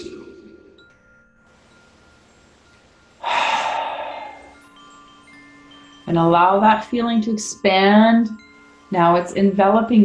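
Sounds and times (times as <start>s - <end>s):
deep breath taken during a guided relaxation: 3.2s - 4.7s
speech: 6.1s - 10.0s.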